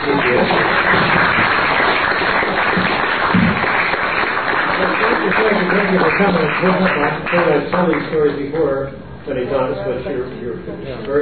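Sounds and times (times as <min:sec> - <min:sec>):
audience clapping at the close of a storytelling talk: 0:00.0 - 0:08.7
speech: 0:06.2 - 0:11.2.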